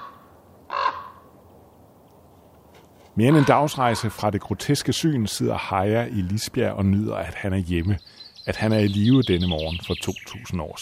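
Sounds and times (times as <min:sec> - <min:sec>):
raven cawing over a battlefield: 0:00.0 - 0:01.4, 0:03.2 - 0:04.2
speech: 0:03.2 - 0:10.8.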